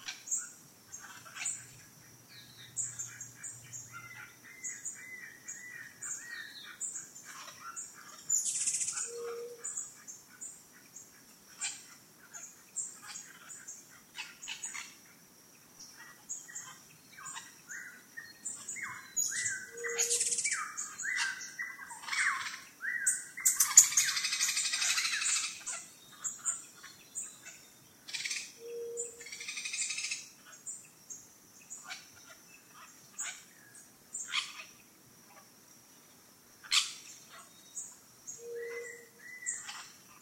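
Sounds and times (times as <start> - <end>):
birds in the rainforest at dawn in Costa Rica: 0.0 - 40.1.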